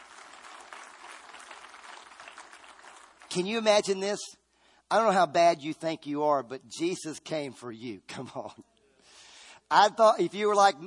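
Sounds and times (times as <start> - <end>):
audience clapping: 0.0 - 4.0
speech: 3.3 - 8.7, 9.7 - 10.8.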